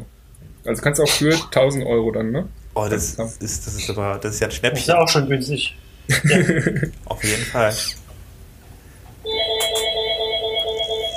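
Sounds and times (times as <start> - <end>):
speech: 0.6 - 8.0
laughter: 6.1 - 7.4
phone ringing with electronic ringtone: 9.2 - 11.1.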